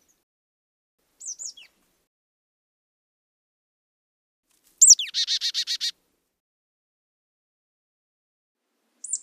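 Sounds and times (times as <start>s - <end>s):
Alpine willow tit calling: 4.8s - 5.9s.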